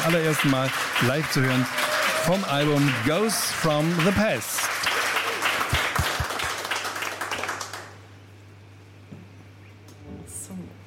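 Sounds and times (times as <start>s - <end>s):
live radio studio audience applause welcoming a singer: 0.0s - 8.1s
speech: 0.1s - 4.8s.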